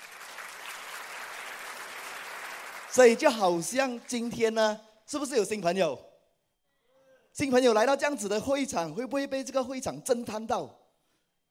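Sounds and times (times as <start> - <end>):
audience applause: 0.0 - 3.2
speech: 2.9 - 6.1, 7.4 - 10.8.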